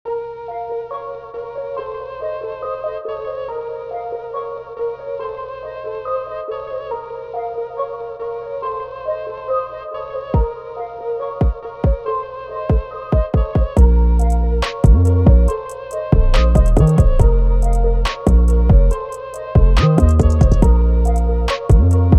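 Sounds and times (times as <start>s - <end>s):
instrumental beat: 10.4s - 10.6s, 11.4s - 12.1s, 12.7s - 22.1s.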